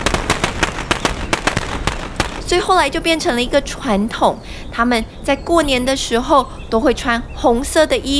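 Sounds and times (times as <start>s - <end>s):
firecrackers exploding: 0.0s - 3.2s
speech: 2.5s - 8.1s.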